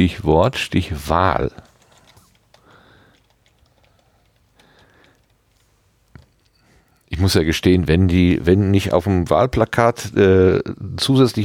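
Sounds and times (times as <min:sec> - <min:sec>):
speech: 0:00.0 - 0:01.7, 0:07.2 - 0:11.4
typing a Google search on a computer keyboard: 0:01.2 - 0:06.6.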